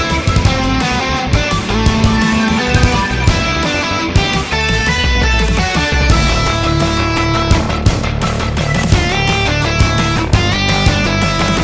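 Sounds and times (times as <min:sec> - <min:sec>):
uplifting electric guitar and synthesizer music at 170 bpm: 0:00.0 - 0:11.6.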